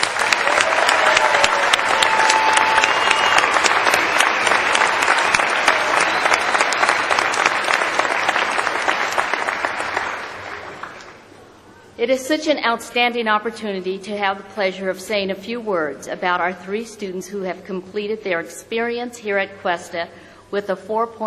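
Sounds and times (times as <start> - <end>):
audience applause at graduation ceremony: 0.0 - 11.2
speech: 12.1 - 21.2.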